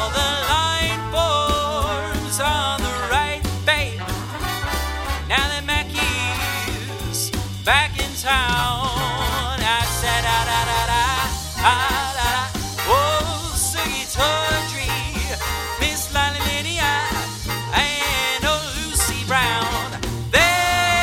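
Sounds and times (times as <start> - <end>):
backing track music: 0.0 - 21.0
jazz singer singing: 0.0 - 21.0.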